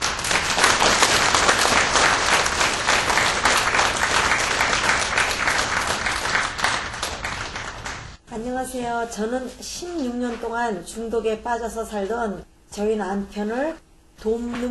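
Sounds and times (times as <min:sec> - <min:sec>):
audience applause welcoming a speaker: 0:00.0 - 0:08.2
speech: 0:08.6 - 0:14.7.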